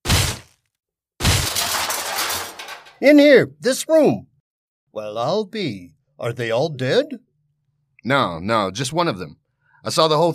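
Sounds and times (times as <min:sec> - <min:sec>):
door being broken down: 0:01.2 - 0:03.1
speech: 0:03.0 - 0:04.3, 0:05.0 - 0:07.3, 0:08.0 - 0:10.3.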